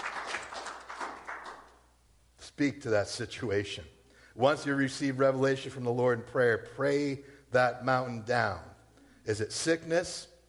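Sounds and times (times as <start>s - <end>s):
audience applause: 0.0s - 1.7s
speech: 2.6s - 8.7s, 9.3s - 10.3s.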